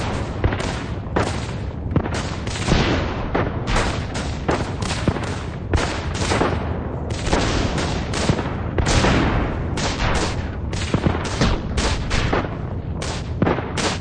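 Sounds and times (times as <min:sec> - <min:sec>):
World War One battlefield explosions: 0:00.0 - 0:13.9
World War One battlefield guns firing: 0:00.0 - 0:13.9.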